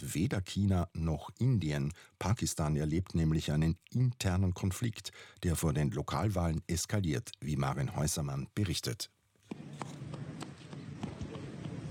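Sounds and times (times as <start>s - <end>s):
hiss: 0.0s - 9.4s
speech: 0.0s - 9.6s
small boy running across a square in Muzaffarabad, Kashmir: 9.4s - 11.9s.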